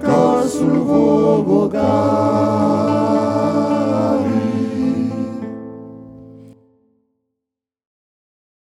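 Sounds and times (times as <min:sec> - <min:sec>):
three voices: 0:00.0 - 0:05.6.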